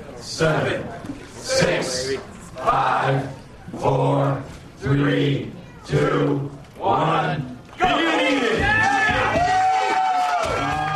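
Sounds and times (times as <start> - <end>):
speech: 0.2 - 8.0
onlookers cheering and shouting at an eating contest: 7.8 - 10.9.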